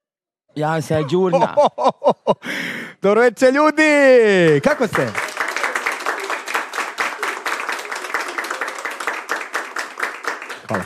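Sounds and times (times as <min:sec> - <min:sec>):
speech: 0:00.6 - 0:05.2
laughter: 0:00.8 - 0:02.5
audience applauding a performer at the start of a show: 0:04.4 - 0:10.8.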